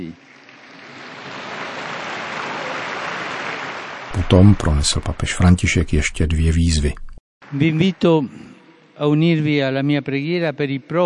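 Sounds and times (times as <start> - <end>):
applause for the newly beatified: 0.4 - 4.8
speech: 4.2 - 11.0.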